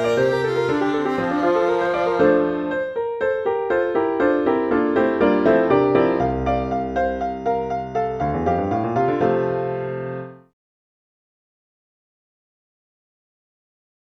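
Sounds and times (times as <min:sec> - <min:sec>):
viola: 0:00.0 - 0:03.0
piano: 0:00.0 - 0:10.6.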